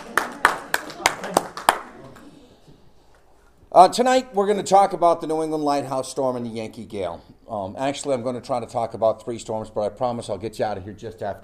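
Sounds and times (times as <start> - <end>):
audience applause: 0.0 - 2.3
speech: 3.8 - 11.4.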